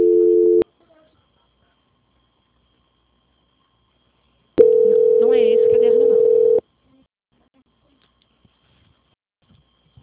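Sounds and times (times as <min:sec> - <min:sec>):
telephone call transfer tone: 0:00.0 - 0:00.6, 0:04.6 - 0:06.6.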